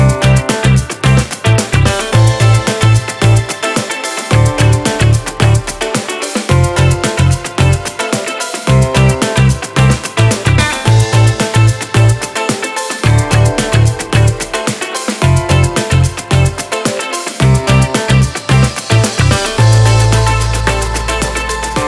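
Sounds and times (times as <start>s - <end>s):
Bird Bass synth bass: 0.0s - 3.5s, 4.3s - 5.9s, 6.5s - 7.9s, 8.7s - 12.2s, 13.0s - 14.6s, 15.2s - 16.6s, 17.4s - 21.8s.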